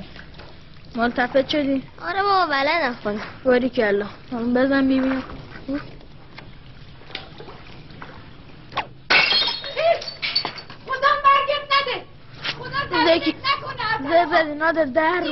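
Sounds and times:
speech: 1.0 - 6.0, 14.4 - 15.3
glass shattering: 9.1 - 10.8
voices talking and calling out: 9.6 - 15.3.

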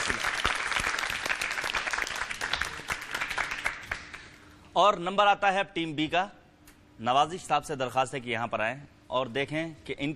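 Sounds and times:
loud audience applause at a cooking contest: 0.0 - 4.2
speech: 4.8 - 6.4, 7.0 - 10.1.

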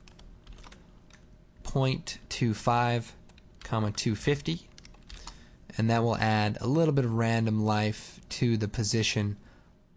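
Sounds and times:
typing on a computer keyboard: 0.0 - 1.2, 4.7 - 5.4
speech: 1.8 - 4.7, 5.8 - 9.4.

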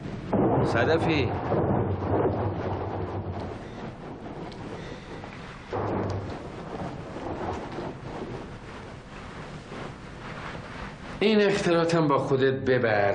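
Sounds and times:
low thunder rumbling: 0.0 - 9.1
rain: 0.3 - 10.5
speech: 0.7 - 2.6, 11.2 - 13.1.

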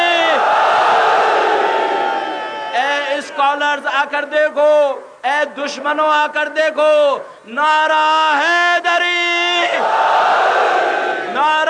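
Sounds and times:
crowd roaring a collective shout at a religious gathering: 0.0 - 2.8, 9.8 - 11.4
speech: 3.8 - 10.1.

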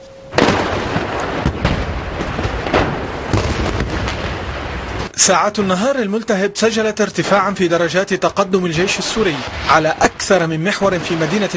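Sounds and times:
heavy artillery shelling: 0.3 - 6.1, 8.6 - 11.5
speech: 5.2 - 11.5.

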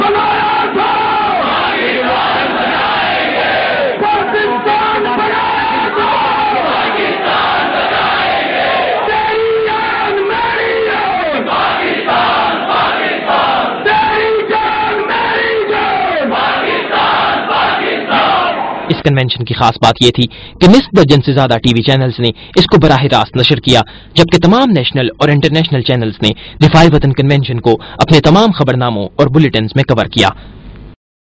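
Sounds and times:
crowd chanting slogans at the Defend the Homeland convention in Islamabad: 0.0 - 18.9
speech: 19.0 - 30.6.

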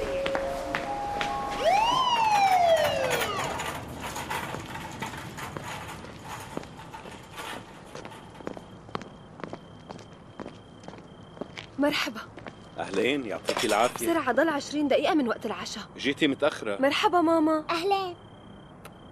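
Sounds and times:
ambulance siren: 0.0 - 4.2
steady noise: 0.0 - 19.1
speech: 11.8 - 18.2.

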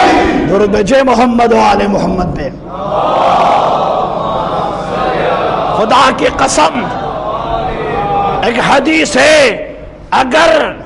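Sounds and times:
crowd at a religious gathering shouting a slogan: 0.0 - 0.5, 2.7 - 8.8
speech: 0.6 - 3.6, 5.8 - 7.0, 8.4 - 10.8.

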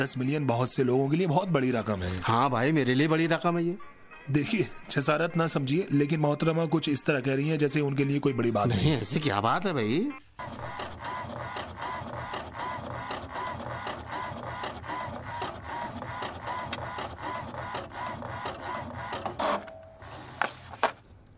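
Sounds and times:
speech: 0.0 - 11.2
printer printing a photo: 10.4 - 21.0.

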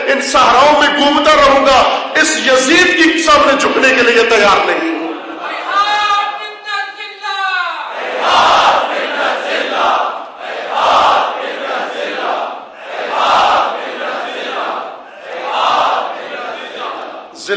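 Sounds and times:
speech: 0.1 - 5.0
crowd chanting a Husseini slogan in unison: 5.0 - 6.4, 7.8 - 17.4.

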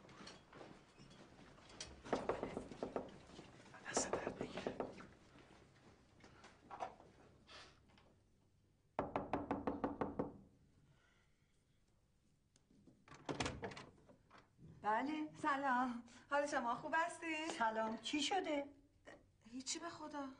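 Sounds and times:
knuckles rapping on a house door: 2.1 - 3.2, 3.9 - 5.0, 9.0 - 10.4
speech: 14.9 - 18.8, 19.5 - 20.3.

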